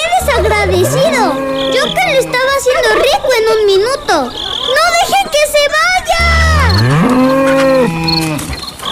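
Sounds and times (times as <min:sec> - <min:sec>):
faint insect chirping: 0:00.1 - 0:08.7
cow mooing: 0:00.2 - 0:03.0, 0:06.1 - 0:08.6
speech: 0:02.7 - 0:05.4.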